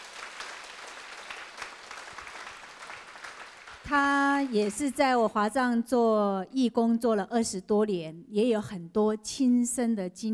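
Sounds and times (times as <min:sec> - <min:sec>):
audience applause: 0:00.0 - 0:05.0
speech: 0:03.9 - 0:10.3.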